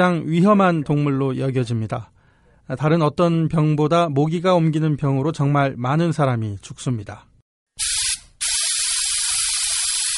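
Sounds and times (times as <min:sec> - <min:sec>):
speech: 0:00.0 - 0:02.1, 0:02.7 - 0:07.9
insecticide spraying from a pressurized can: 0:07.8 - 0:10.1.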